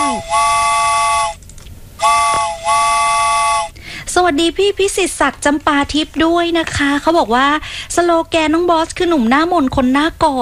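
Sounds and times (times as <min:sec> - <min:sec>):
train whistle: 0:00.0 - 0:01.4, 0:02.0 - 0:03.8
speech: 0:04.2 - 0:10.4.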